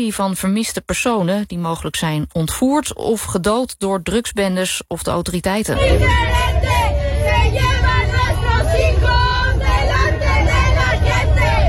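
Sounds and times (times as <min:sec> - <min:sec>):
speech: 0:00.0 - 0:07.0
low rumble of traffic: 0:05.8 - 0:11.6
protest crowd chanting slogans outside stadium: 0:05.8 - 0:11.6.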